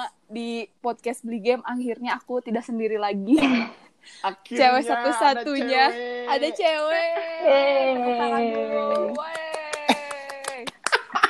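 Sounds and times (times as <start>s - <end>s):
speech: 0.3s - 9.4s
long held vocal tone: 4.3s - 10.6s
laughter: 6.7s - 11.2s
hand clapping: 8.8s - 11.2s.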